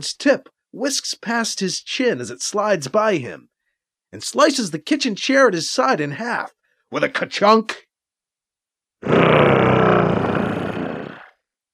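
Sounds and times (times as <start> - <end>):
speech: 0.0 - 3.5, 4.1 - 7.8
mechanical growl of the Devrizium: 9.0 - 11.3.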